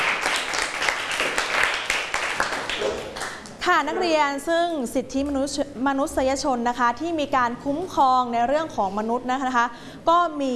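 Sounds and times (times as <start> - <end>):
students clapping for themselves: 0.0 - 3.6
speech: 3.7 - 10.5.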